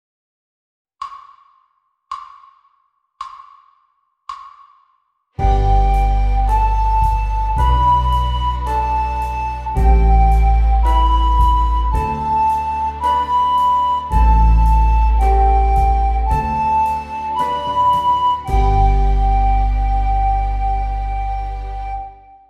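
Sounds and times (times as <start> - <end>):
recorder playing a study: 5.4 - 22.4.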